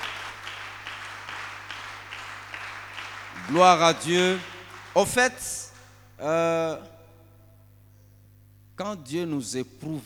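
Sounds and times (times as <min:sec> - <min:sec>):
church congregation clapping in unison: 0:00.0 - 0:06.0
low constant hum: 0:00.0 - 0:10.0
speech: 0:03.4 - 0:05.6, 0:06.2 - 0:06.9, 0:08.8 - 0:10.0.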